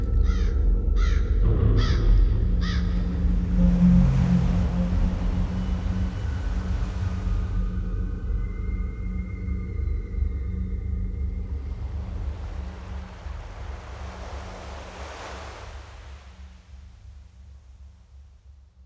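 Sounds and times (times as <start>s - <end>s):
steady low rumble: 0.0s - 17.4s
waves crashing on the vast open sea: 2.7s - 8.8s, 11.2s - 17.1s
faint humming tone: 2.8s - 17.2s.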